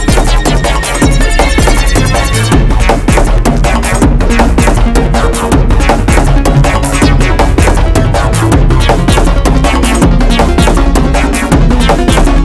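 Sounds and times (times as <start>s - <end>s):
slower invigorating outer space exploration style music: 0.0s - 12.4s.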